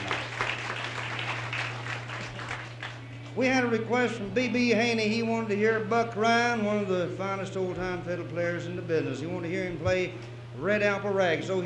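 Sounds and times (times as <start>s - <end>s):
audience applause: 0.0s - 3.1s
low electrical hum: 0.0s - 11.6s
speech: 3.4s - 11.6s.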